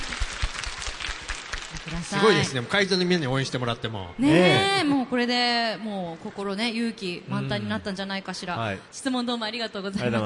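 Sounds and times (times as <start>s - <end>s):
crowd clapping: 0.0s - 2.9s
speech: 1.8s - 10.2s.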